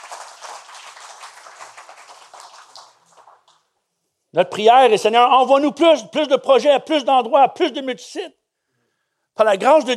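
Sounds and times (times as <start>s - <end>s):
audience applauding: 0.0s - 3.6s
speech: 4.3s - 8.4s, 9.4s - 9.9s.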